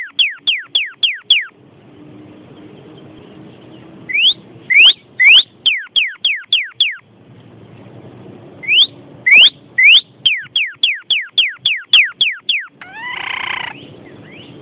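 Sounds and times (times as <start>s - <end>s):
bird singing quick upswept whistled notes: 0.0s - 1.6s, 4.1s - 7.0s, 8.6s - 14.6s.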